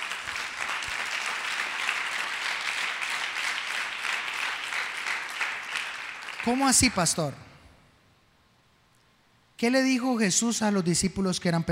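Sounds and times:
audience applause: 0.0 - 6.9
speech: 6.4 - 7.5, 9.6 - 11.7.

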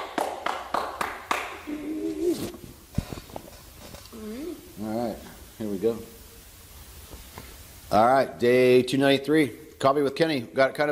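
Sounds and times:
hand clap for recording sync: 0.0 - 1.8
speech: 5.8 - 6.1, 7.9 - 10.9.

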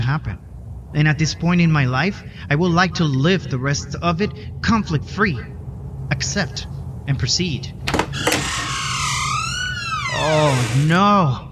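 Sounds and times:
speech: 0.1 - 8.4, 10.2 - 11.5
door opening: 7.7 - 11.5.

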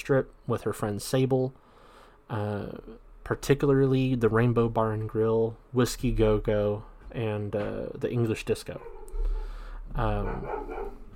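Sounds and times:
speech: 0.0 - 1.7, 2.3 - 9.3, 9.9 - 11.0
low hum: 0.0 - 11.1
dog barking and whining: 8.8 - 11.1.

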